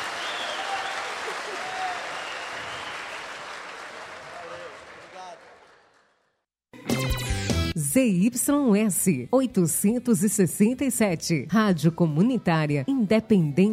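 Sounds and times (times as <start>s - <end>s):
applause: 0.0s - 6.2s
speech: 8.0s - 13.7s.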